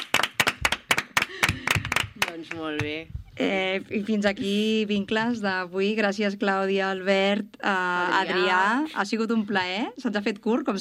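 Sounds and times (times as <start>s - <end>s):
small group clapping: 0.0s - 3.0s
speech: 2.4s - 10.7s.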